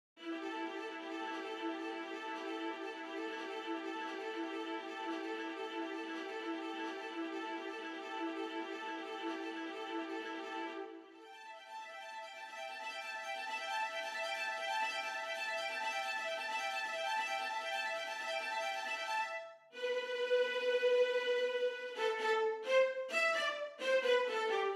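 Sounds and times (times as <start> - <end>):
violins: 0.2 - 24.7.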